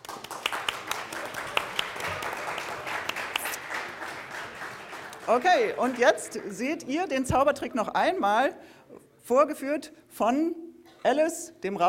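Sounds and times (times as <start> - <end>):
audience applause welcoming a newcomer: 0.0 - 6.7
speech: 5.3 - 11.8.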